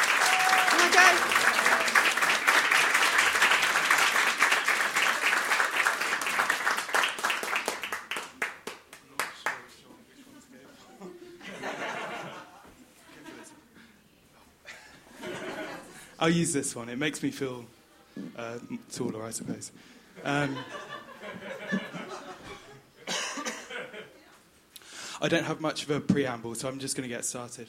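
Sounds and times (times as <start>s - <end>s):
audience applause: 0.0s - 9.6s
laughter: 10.1s - 13.7s, 14.6s - 16.1s, 20.2s - 24.3s
speech: 16.2s - 17.8s, 18.4s - 20.8s, 25.2s - 27.6s.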